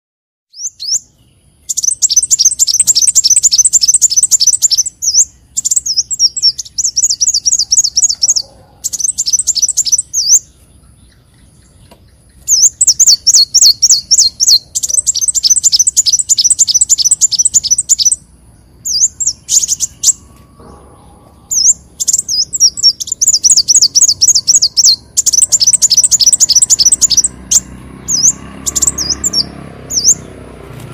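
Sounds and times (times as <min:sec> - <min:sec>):
leafbird song: 0:00.5 - 0:30.4.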